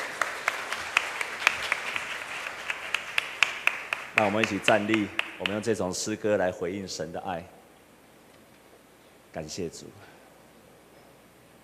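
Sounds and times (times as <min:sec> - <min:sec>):
audience applause: 0:00.0 - 0:05.7
speech: 0:04.2 - 0:07.6, 0:09.3 - 0:10.1.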